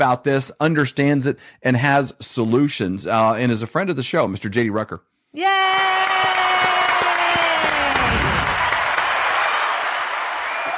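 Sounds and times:
speech: 0.0s - 6.8s
applause: 5.5s - 10.7s.

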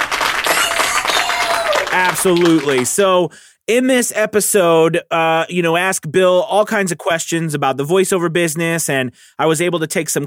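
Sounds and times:
applause: 0.0s - 3.0s
speech: 2.0s - 10.2s.

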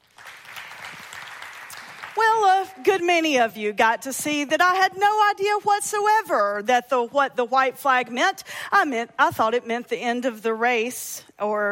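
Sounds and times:
audience clapping: 0.0s - 2.7s
speech: 2.8s - 11.7s.

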